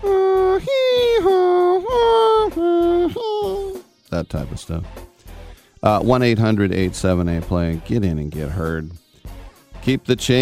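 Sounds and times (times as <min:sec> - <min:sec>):
voice imitating a European two-tone siren: 0:00.0 - 0:03.8
speech: 0:04.2 - 0:05.1, 0:05.8 - 0:09.0, 0:09.8 - 0:10.4.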